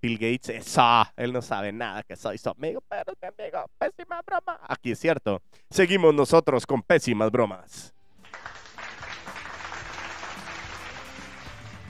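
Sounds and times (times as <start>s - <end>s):
speech: 0.0s - 8.6s
applause sound effect from mixer: 8.2s - 11.8s.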